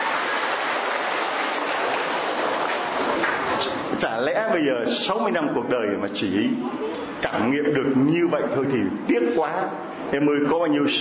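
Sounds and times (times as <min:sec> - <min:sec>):
crowd applause: 0:00.0 - 0:03.8
speech: 0:04.1 - 0:10.9.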